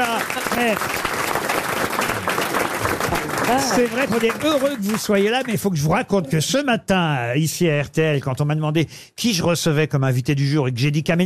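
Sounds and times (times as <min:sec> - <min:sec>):
speech: 0:00.0 - 0:01.0, 0:03.5 - 0:11.2
audience applause: 0:00.0 - 0:06.2.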